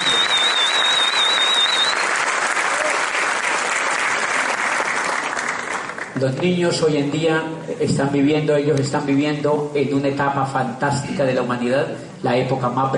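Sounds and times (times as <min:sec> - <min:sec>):
thin whistle: 0:00.0 - 0:02.2
audience applause: 0:00.0 - 0:06.2
speech: 0:06.2 - 0:12.9.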